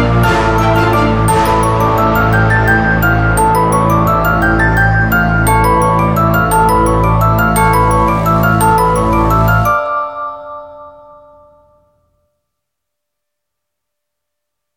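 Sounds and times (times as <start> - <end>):
carol bells ringing: 0.2 - 11.8.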